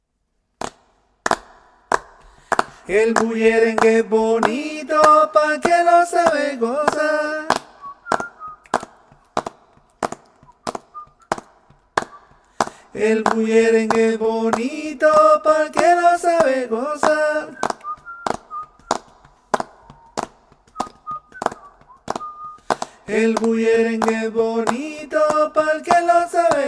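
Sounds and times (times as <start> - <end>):
bullerengue alto music: 1.3 - 26.6.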